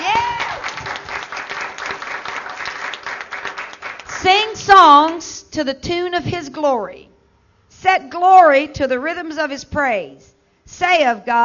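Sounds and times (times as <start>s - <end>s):
audience applause: 0.0s - 4.2s
speech: 4.2s - 7.1s, 7.8s - 11.4s.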